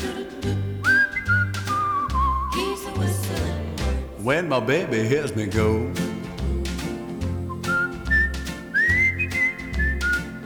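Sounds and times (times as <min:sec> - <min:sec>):
steady thumping beat and backing music: 0:00.0 - 0:04.4, 0:05.4 - 0:10.4
speech: 0:00.4 - 0:00.6, 0:04.3 - 0:06.0
person whistling a tune: 0:00.8 - 0:03.1, 0:07.4 - 0:10.4.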